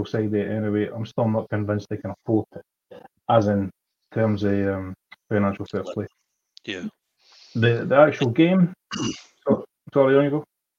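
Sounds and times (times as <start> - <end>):
speech: 0.0 - 7.0, 7.6 - 10.5
throat clearing: 8.9 - 9.6.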